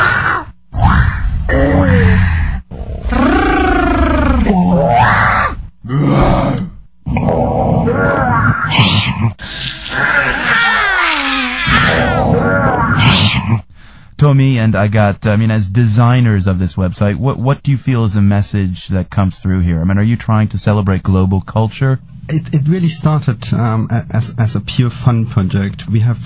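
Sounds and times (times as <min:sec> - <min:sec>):
children imitating lion roars: 0:00.0 - 0:08.8, 0:09.5 - 0:13.2
speech: 0:14.7 - 0:26.2.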